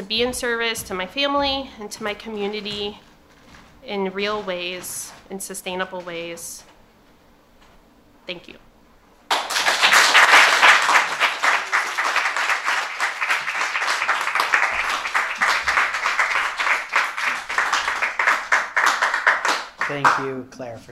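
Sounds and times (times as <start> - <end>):
speech: 0.1 - 3.1, 3.8 - 6.7, 8.3 - 8.6, 19.9 - 20.9
audience applause: 9.3 - 20.4.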